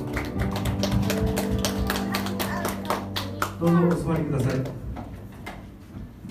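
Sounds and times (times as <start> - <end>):
audience applause: 0.0 - 4.8
speech: 3.6 - 4.8.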